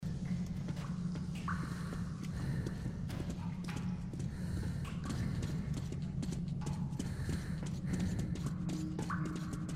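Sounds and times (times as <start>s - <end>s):
metro tunnel ambience: 0.0s - 9.7s.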